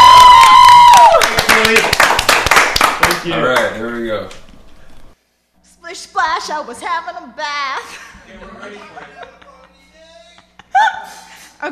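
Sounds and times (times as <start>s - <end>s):
audience applause and clapping: 0.0s - 3.7s
speech: 6.2s - 9.4s, 10.8s - 11.7s
laughter: 7.8s - 11.1s.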